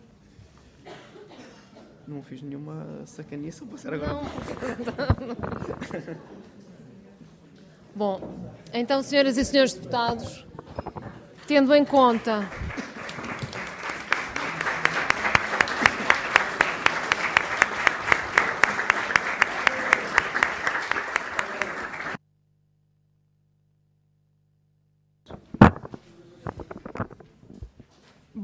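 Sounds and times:
speech: 0:02.1 - 0:06.5, 0:08.0 - 0:10.5, 0:11.5 - 0:12.6
laughter: 0:04.0 - 0:06.5
audience applause: 0:12.0 - 0:22.2.

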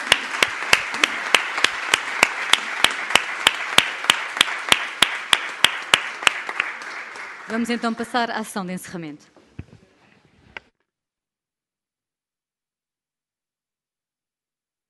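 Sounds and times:
applause: 0:00.0 - 0:08.6
speech: 0:07.5 - 0:09.3.

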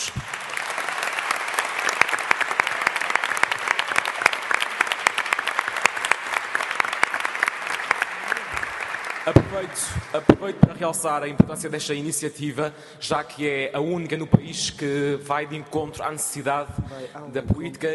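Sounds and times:
round of applause: 0:00.0 - 0:10.4
speech: 0:09.3 - 0:17.9.

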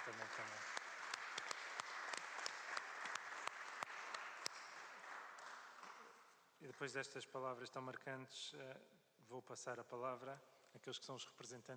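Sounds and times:
speech: 0:00.0 - 0:00.8, 0:06.6 - 0:11.7
round of applause: 0:00.0 - 0:07.0.

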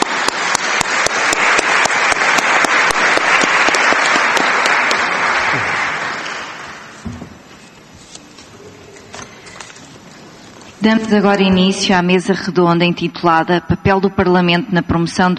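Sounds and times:
audience applauding: 0:00.0 - 0:07.5
speech: 0:10.8 - 0:15.3.

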